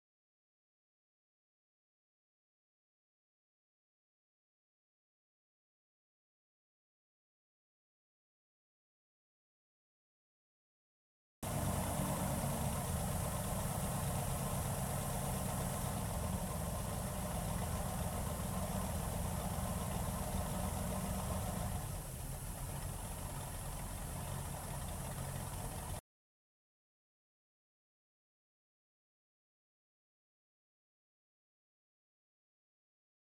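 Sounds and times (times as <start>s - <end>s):
Wellcraft Scarab 34 boat engine starting: 11.4s - 26.0s.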